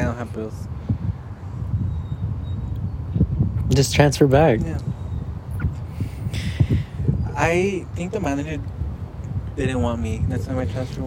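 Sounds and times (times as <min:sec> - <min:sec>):
wind blowing against a microphone: 0:00.0 - 0:11.0
speech: 0:00.2 - 0:01.0, 0:03.8 - 0:04.9, 0:07.4 - 0:08.8, 0:09.6 - 0:11.0.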